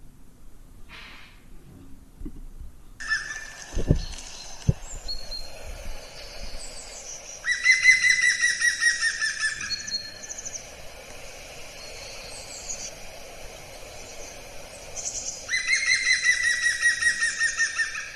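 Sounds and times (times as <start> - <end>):
woodpecker call notes: 3.0 - 5.6, 6.2 - 10.8, 14.0 - 18.1
birdsong: 3.0 - 18.1.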